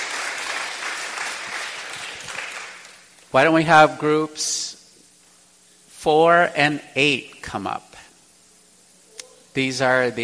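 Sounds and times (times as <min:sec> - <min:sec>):
audience applause: 0:00.0 - 0:03.1
speech: 0:03.3 - 0:04.7, 0:06.0 - 0:07.9, 0:09.6 - 0:10.2.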